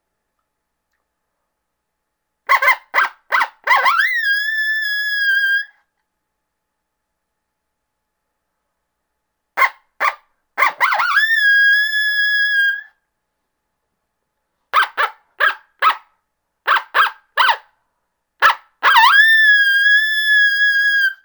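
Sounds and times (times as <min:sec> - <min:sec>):
coyote barks: 0:02.5 - 0:04.7, 0:09.6 - 0:12.8, 0:14.7 - 0:17.7, 0:18.4 - 0:21.2.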